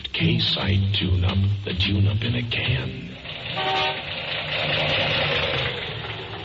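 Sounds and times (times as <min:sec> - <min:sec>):
speech: 0:00.2 - 0:03.8
misfiring car engine idling: 0:02.3 - 0:06.4.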